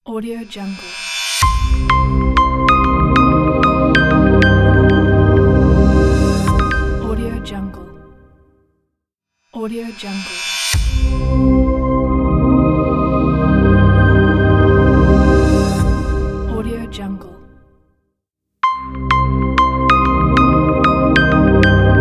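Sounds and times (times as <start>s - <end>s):
business logo jingle: 1.4s - 8.2s, 11.1s - 16.6s, 18.6s - 21.9s.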